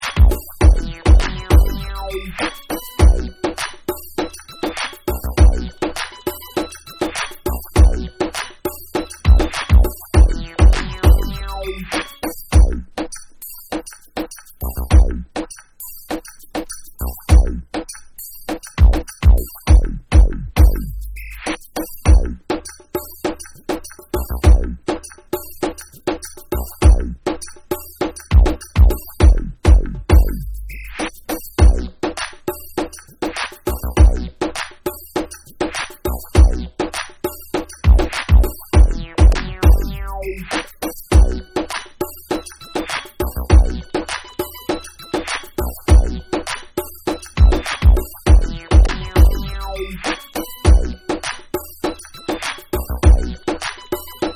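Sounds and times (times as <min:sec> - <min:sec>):
instrumental music: 0:00.0 - 0:54.3.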